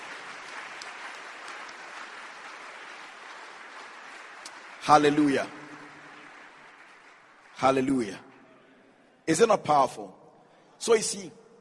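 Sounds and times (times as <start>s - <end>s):
audience clapping: 0.0s - 8.7s
speech: 4.8s - 5.6s, 7.6s - 8.3s, 9.3s - 10.2s, 10.8s - 11.4s.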